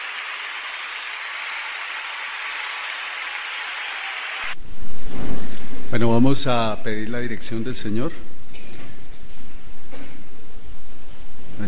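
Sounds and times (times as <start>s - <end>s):
audience applause: 0.0s - 4.6s
speech: 5.9s - 8.4s.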